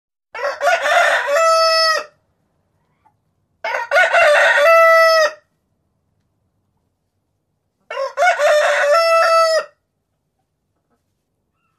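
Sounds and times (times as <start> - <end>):
rooster crowing: 0.3 - 2.2, 3.6 - 5.5, 7.9 - 9.8.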